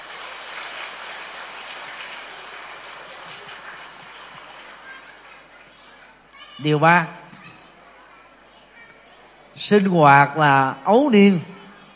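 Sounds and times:
loud round of applause: 0:00.0 - 0:06.6
speech: 0:06.6 - 0:07.2, 0:09.6 - 0:11.5.

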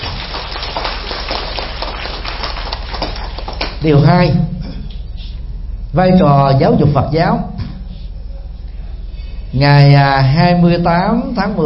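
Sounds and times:
crowd applause: 0:00.0 - 0:03.8
speech: 0:03.8 - 0:04.5, 0:06.0 - 0:07.5, 0:09.5 - 0:11.6.

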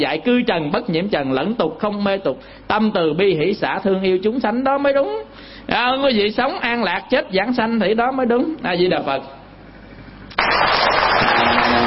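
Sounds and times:
speech: 0:00.0 - 0:09.4
Buddhist audience applause at the close of an evening Dharma talk: 0:10.4 - 0:11.8.

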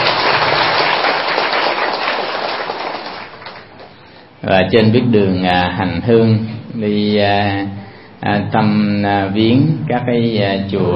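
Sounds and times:
audience applause: 0:00.0 - 0:03.9
speech: 0:04.4 - 0:10.9.

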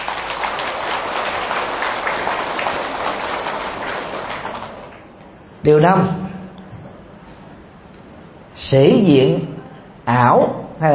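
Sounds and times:
crowd applauding: 0:00.0 - 0:05.2
speech: 0:05.6 - 0:06.2, 0:08.7 - 0:10.9.

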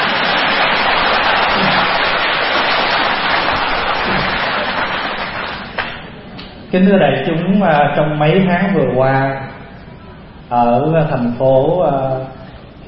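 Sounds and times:
crowd applause: 0:00.0 - 0:06.0
speech: 0:06.7 - 0:09.6, 0:10.5 - 0:12.4.

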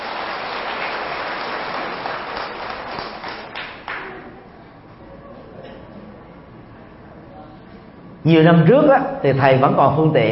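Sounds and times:
crowd applauding: 0:00.0 - 0:04.4
speech: 0:08.2 - 0:10.3.

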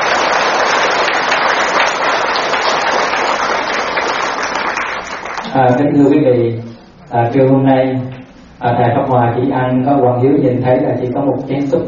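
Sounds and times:
audience applause: 0:00.0 - 0:05.5
speech: 0:05.6 - 0:11.8.

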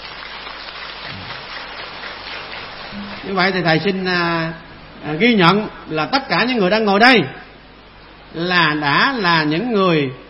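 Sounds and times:
audience clapping at a Buddhist dharma talk: 0:00.0 - 0:03.6
speech: 0:03.2 - 0:07.4, 0:08.3 - 0:10.2.

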